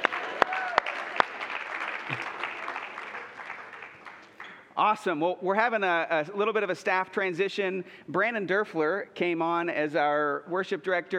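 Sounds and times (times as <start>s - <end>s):
audience applause: 0.0s - 4.6s
speech: 4.8s - 11.1s.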